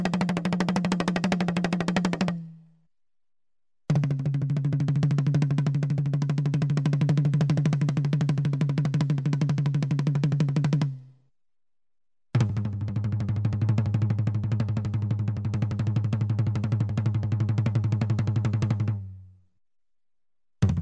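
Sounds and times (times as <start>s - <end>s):
tom-tom drum set: 0.0s - 2.6s, 3.9s - 11.1s, 12.4s - 19.2s, 20.6s - 20.8s.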